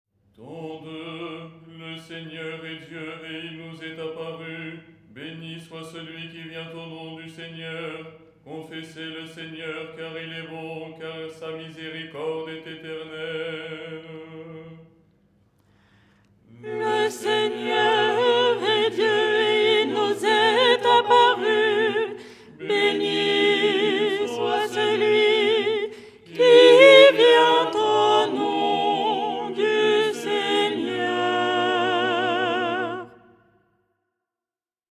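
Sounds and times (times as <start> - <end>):
soprano singing: 16.6 - 33.3.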